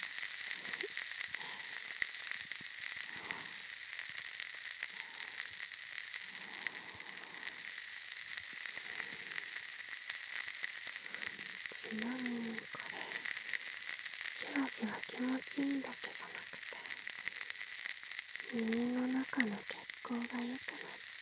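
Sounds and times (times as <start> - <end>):
carbonated fizzing crackle close to ears: 0.0 - 21.2
speech: 11.9 - 12.3, 18.6 - 19.7.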